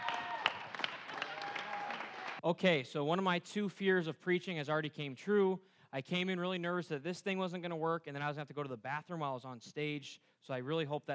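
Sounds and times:
audience clapping: 0:00.0 - 0:02.4
speech: 0:02.4 - 0:11.1.

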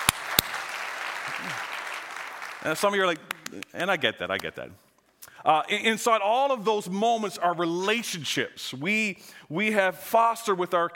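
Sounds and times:
audience applauding: 0:00.0 - 0:03.7
speech: 0:01.4 - 0:01.7, 0:02.6 - 0:04.8, 0:05.4 - 0:10.9.

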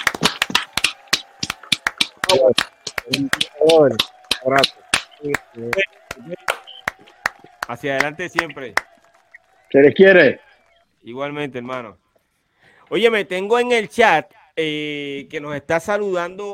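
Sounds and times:
handful of people clapping: 0:00.0 - 0:11.0
voices talking and calling out: 0:00.0 - 0:11.1
speech: 0:02.3 - 0:06.6, 0:07.7 - 0:08.9, 0:09.7 - 0:10.4, 0:11.0 - 0:12.0, 0:12.9 - 0:16.5.

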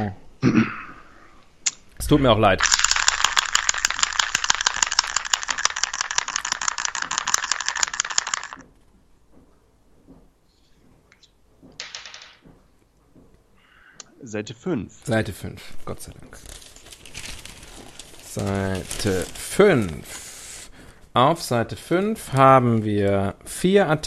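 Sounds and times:
speech: 0:00.0 - 0:00.8, 0:02.1 - 0:02.8, 0:14.3 - 0:16.6, 0:18.4 - 0:20.3, 0:21.2 - 0:24.0
dice rolling: 0:02.6 - 0:08.6, 0:11.7 - 0:12.5.

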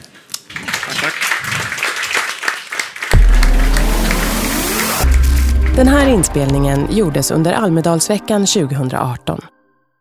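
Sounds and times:
audience applause: 0:00.5 - 0:07.0
loud low drone: 0:03.2 - 0:08.3
speech: 0:05.8 - 0:09.6.

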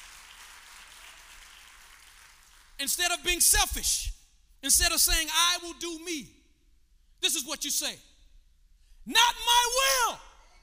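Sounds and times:
audience clapping hands: 0:00.0 - 0:03.0
speech: 0:02.8 - 0:06.4, 0:07.2 - 0:08.1, 0:09.0 - 0:10.2.

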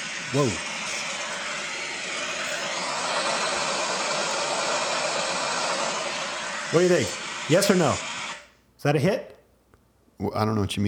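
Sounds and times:
static noise: 0:00.0 - 0:08.6
speech: 0:00.3 - 0:00.7, 0:06.7 - 0:08.1, 0:08.8 - 0:09.3, 0:10.2 - 0:10.8.

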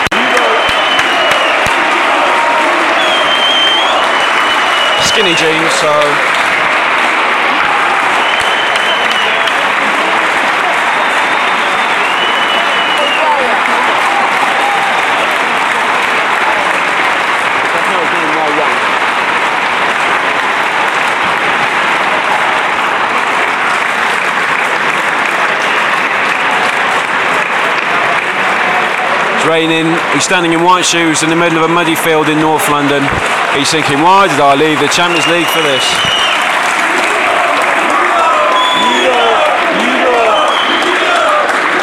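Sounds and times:
stadium crowd cheering as team takes the pitch: 0:00.0 - 0:41.8
high whistles: 0:00.1 - 0:01.8, 0:02.9 - 0:05.6, 0:08.0 - 0:09.6, 0:10.9 - 0:13.4, 0:35.1 - 0:36.6, 0:38.4 - 0:39.4, 0:40.1 - 0:41.0
speech: 0:05.2 - 0:06.3, 0:29.5 - 0:36.4.

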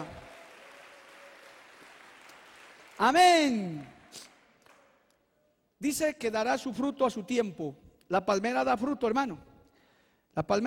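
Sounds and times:
congregation applause during a church sermon: 0:00.0 - 0:05.1
speech: 0:03.0 - 0:04.3, 0:05.8 - 0:09.5, 0:10.4 - 0:10.6.

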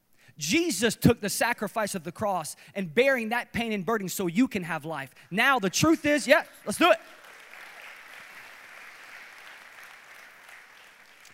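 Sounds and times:
speech: 0:00.4 - 0:07.2
audience clapping: 0:06.5 - 0:11.3.

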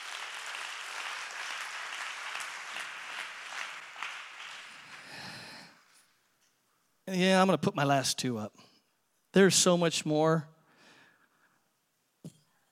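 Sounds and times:
audience clapping hands: 0:00.0 - 0:06.0
speech: 0:07.1 - 0:08.7, 0:09.3 - 0:10.5.

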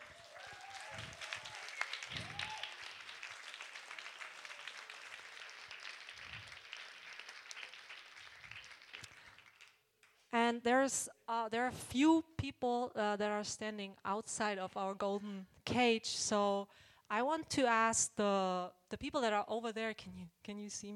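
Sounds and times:
audience applause: 0:00.0 - 0:09.9
speech: 0:10.5 - 0:20.9.

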